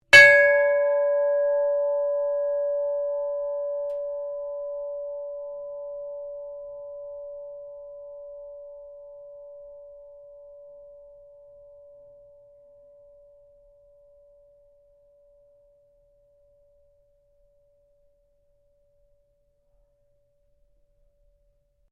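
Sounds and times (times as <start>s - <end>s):
ship's bell ringing: 0.1s - 10.1s.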